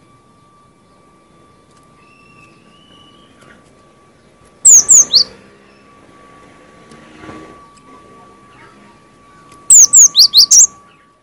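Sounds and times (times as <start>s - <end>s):
faint hum: 0.0s - 11.2s
cinereous tit calling: 4.6s - 5.3s, 9.7s - 10.7s.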